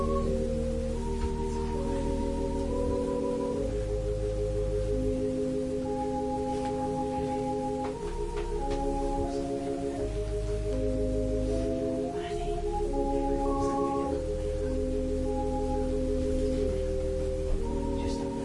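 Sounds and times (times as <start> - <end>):
organ playing a prelude: 0.0 - 18.4.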